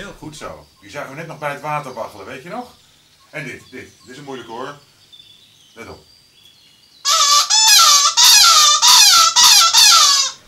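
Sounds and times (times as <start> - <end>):
speech: 0.1 - 4.9, 5.8 - 6.1
seagull crying: 7.1 - 10.4.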